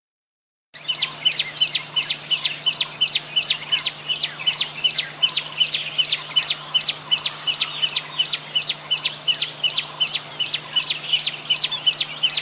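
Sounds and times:
bird song of high arched whistled notes: 0.8 - 12.4.

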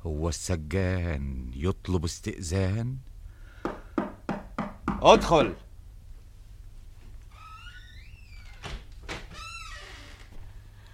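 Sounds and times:
speech: 0.0 - 3.1, 5.0 - 5.6
door opening: 7.3 - 10.4.

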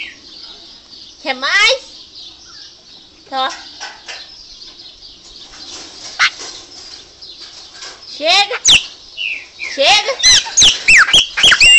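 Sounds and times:
speech: 1.2 - 1.9, 3.3 - 3.7, 8.2 - 8.9, 9.8 - 10.7
Chopi Blackbird song: 8.6 - 11.7.

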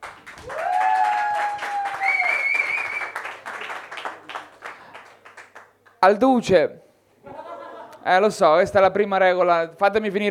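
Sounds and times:
comedy night crowd applauding: 0.0 - 6.0
long high whistles from a comedy night crowd: 1.9 - 3.3
speech: 6.0 - 6.8, 8.0 - 10.2
laughter: 7.2 - 8.1.

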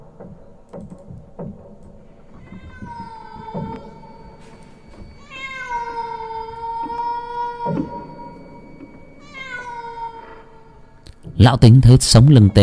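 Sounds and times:
cat yowling eerily at night: 2.4 - 4.4, 5.2 - 10.8
speech: 11.4 - 12.6.

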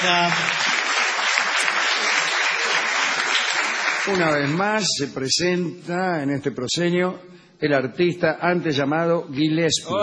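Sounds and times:
speech: 0.0 - 0.7, 4.0 - 10.0
audience applause for a performer at a live theatre stage show: 0.0 - 4.7.

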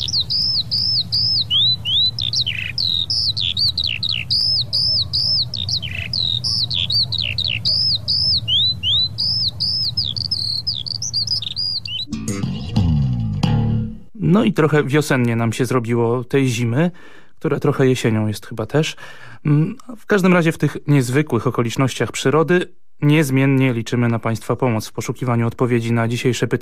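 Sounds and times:
birds chirping and squawking: 0.0 - 12.7
low hum: 12.0 - 14.2
speech: 14.3 - 26.6.

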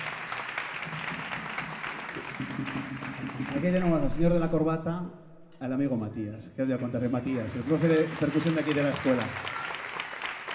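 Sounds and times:
audience applause for a drummer at a music-school Santa Cecilia concert: 0.0 - 3.8, 7.0 - 10.5
speech: 3.6 - 9.6.

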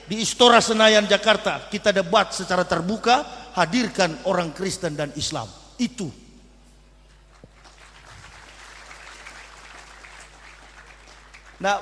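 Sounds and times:
speech: 0.1 - 6.2, 11.6 - 11.8
audience clapping: 7.1 - 11.8.

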